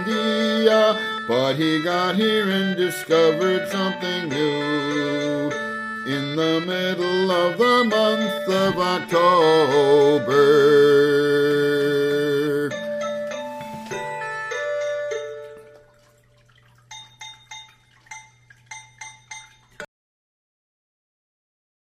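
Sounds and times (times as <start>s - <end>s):
vocals: 0.0s - 13.0s.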